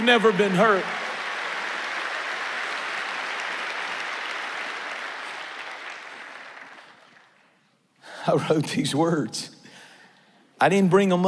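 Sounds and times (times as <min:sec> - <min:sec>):
speech: 0:00.0 - 0:01.0, 0:08.2 - 0:09.6, 0:10.6 - 0:11.2
audience clapping hands: 0:00.0 - 0:07.8.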